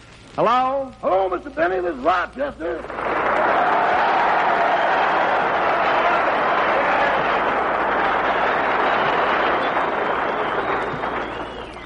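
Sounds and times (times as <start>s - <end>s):
speech: 0.4s - 3.5s
audience applause: 2.8s - 11.8s.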